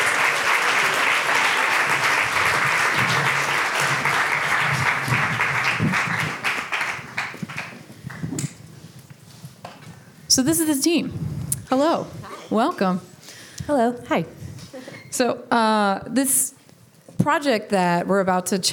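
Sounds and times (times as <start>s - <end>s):
audience applause welcoming the Sexism Project team: 0.0s - 8.3s
speech: 10.4s - 13.1s, 13.7s - 14.4s, 15.2s - 16.6s, 17.2s - 18.7s.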